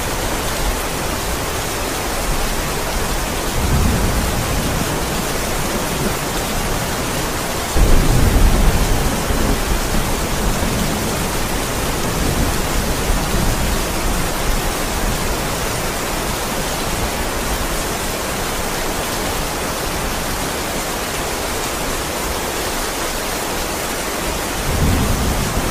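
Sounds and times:
heavy rain on a stormy night: 0.0s - 25.6s
strong wind gusts: 0.0s - 25.6s
low thunder rumbles: 2.7s - 16.0s, 24.7s - 25.6s.

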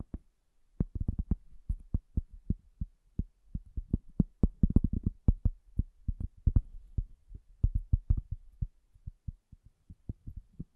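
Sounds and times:
soft bassy muffled tapping: 0.8s - 9.4s.

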